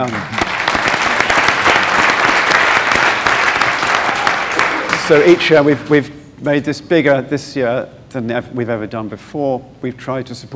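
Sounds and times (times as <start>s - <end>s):
speech: 0.0s - 0.4s, 5.1s - 10.5s
audience round of applause: 0.0s - 6.0s.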